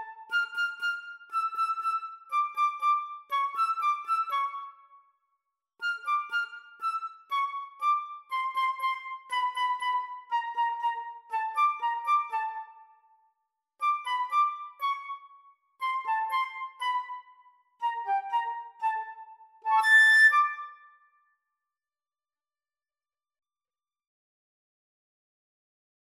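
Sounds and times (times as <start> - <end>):
flute duet: 0.0 - 4.8, 5.8 - 13.0, 13.8 - 20.9.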